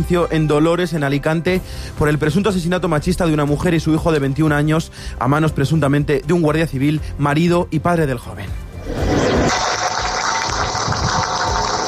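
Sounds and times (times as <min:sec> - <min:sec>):
speech: 0:00.0 - 0:08.6
crowd applause ending minute of silence: 0:09.1 - 0:11.8.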